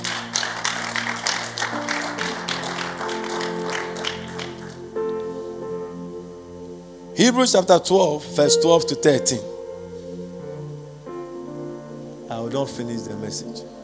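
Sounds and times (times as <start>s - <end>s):
audience clapping: 0.0s - 5.1s
speech: 7.2s - 9.5s, 12.5s - 13.8s.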